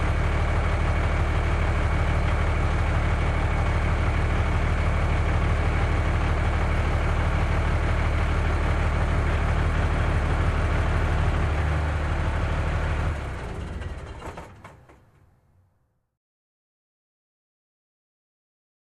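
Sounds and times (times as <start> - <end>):
garbage truck engine starting: 0.0 - 15.8.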